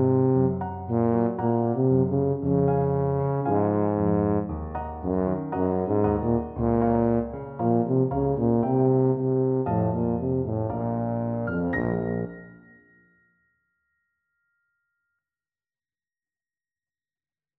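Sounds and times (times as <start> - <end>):
tuba: 0.0 - 12.6.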